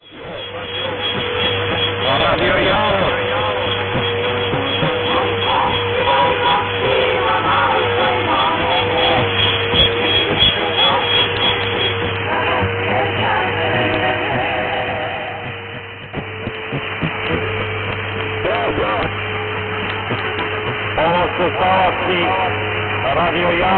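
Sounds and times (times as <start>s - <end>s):
1630 kHz radio station broadcast: 0.0s - 23.7s.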